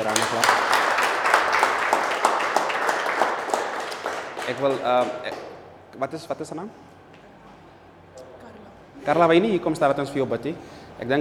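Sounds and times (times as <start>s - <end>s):
church congregation clapping hands in praise to the Lord: 0.0s - 5.9s
speech: 4.5s - 6.9s, 9.0s - 11.1s.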